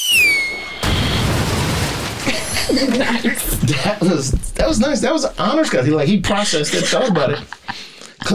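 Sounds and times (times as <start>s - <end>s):
high tone falling in pitch: 0.0s - 3.7s
speech: 0.1s - 0.8s, 2.7s - 8.3s
laughter: 2.2s - 8.3s
microphone dropped and hitting the floor: 2.5s - 5.5s.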